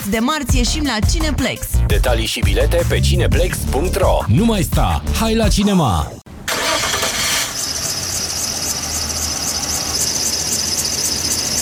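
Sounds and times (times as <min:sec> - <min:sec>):
speech: 0:00.0 - 0:06.2
car engine cranking, failing to start: 0:06.5 - 0:11.6.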